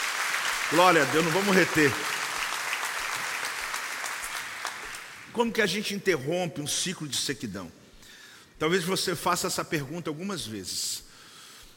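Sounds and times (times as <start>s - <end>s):
audience applause: 0.0s - 5.3s
speech: 0.7s - 2.2s, 5.4s - 7.8s, 8.6s - 11.1s.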